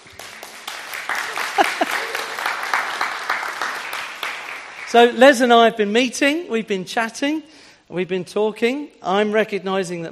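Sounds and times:
audience applauding: 0.0 - 5.2
laughter: 1.1 - 3.0
speech: 4.9 - 10.0.

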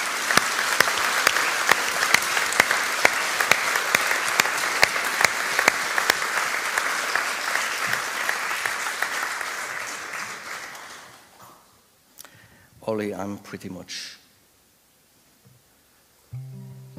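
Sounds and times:
audience applause: 0.0 - 11.4
speech: 12.9 - 14.2.

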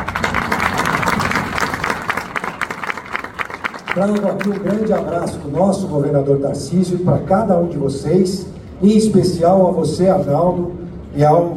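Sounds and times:
audience applause: 0.0 - 5.6
speech: 4.0 - 11.5.

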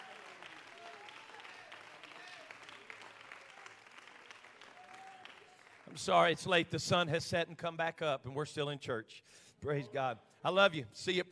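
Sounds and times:
audience clapping: 0.0 - 6.6
speech: 5.9 - 11.3.

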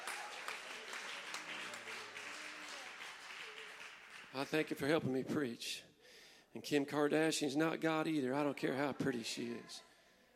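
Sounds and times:
crowd applauding: 0.0 - 5.0
speech: 4.3 - 5.9, 6.5 - 9.9.

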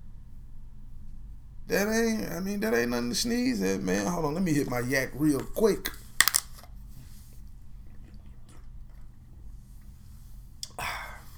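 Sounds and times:
speech: 1.7 - 6.0
water bottle seal being popped open: 6.2 - 6.7.

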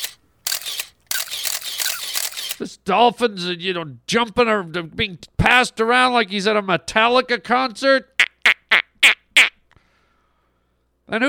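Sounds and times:
camera shutter clicking: 0.0 - 2.6
speech: 2.6 - 8.2, 11.1 - 11.2.

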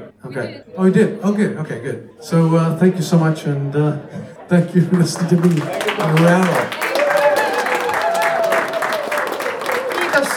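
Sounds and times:
speech: 0.3 - 6.8
laughter: 0.9 - 10.3
audience applause: 4.4 - 10.3.

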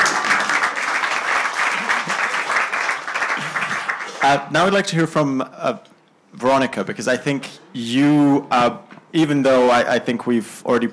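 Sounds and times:
audience applause: 0.0 - 4.3
speech: 4.2 - 10.9.

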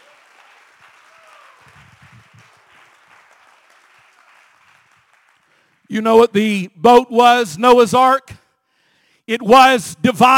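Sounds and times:
audience clapping: 0.0 - 5.9
speech: 5.9 - 8.4, 9.3 - 10.3.

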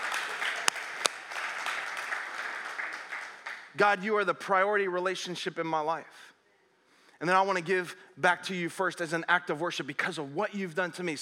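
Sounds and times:
audience clapping: 0.0 - 3.9
speech: 3.8 - 6.4, 7.2 - 11.1.

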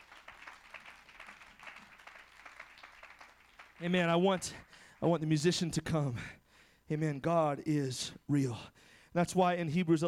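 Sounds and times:
crowd clapping hands: 0.0 - 5.2
speech: 3.8 - 10.0.

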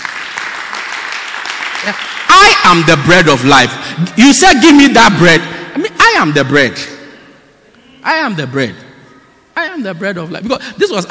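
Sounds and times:
crowd applause: 0.0 - 2.9
speech: 1.8 - 6.9, 8.0 - 8.8, 9.8 - 11.1.

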